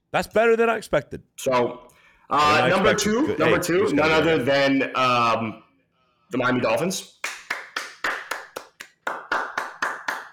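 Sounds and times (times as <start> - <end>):
speech: 0.1 - 5.6, 6.3 - 7.2
one person clapping hands: 7.1 - 10.3.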